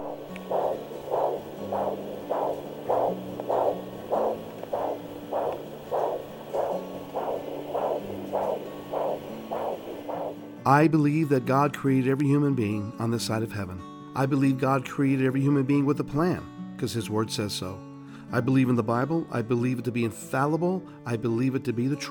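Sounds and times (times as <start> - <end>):
fetal heartbeat at 6-7 weeks of pregnancy picked up by ultrasound: 0.0 - 10.4
low electronic hum: 0.0 - 10.4
speech: 10.7 - 22.0.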